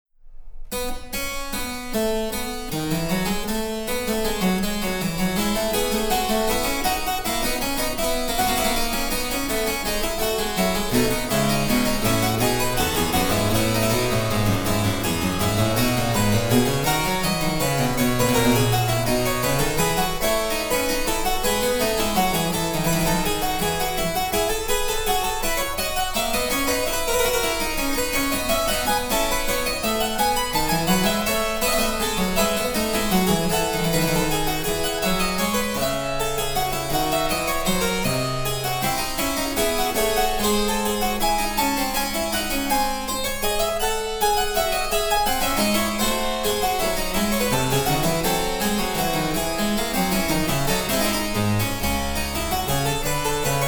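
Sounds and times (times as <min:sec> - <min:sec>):
harpsichord: 0:00.7 - 0:53.6.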